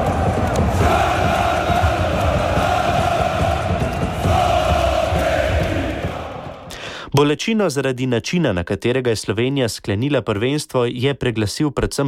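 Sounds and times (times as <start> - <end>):
football fans chanting and singing: 0.0 - 6.8
speech: 7.2 - 12.0.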